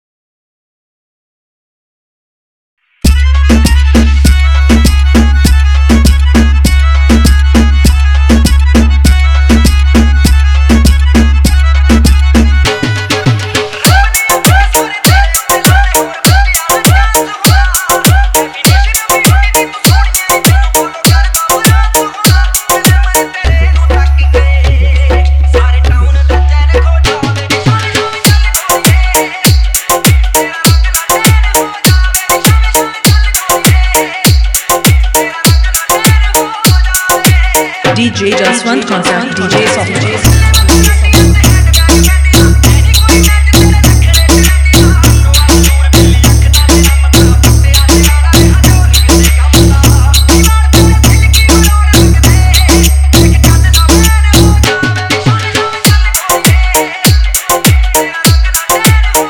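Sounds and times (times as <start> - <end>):
remixed Punjabi song: 2.9 - 59.2.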